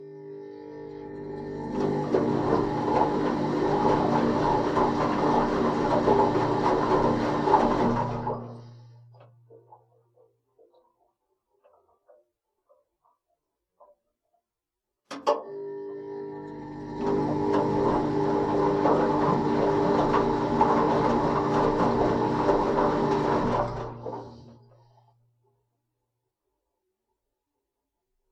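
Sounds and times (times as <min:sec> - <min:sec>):
washing machine wash and spin cycle: 0:00.0 - 0:10.3, 0:15.1 - 0:25.1.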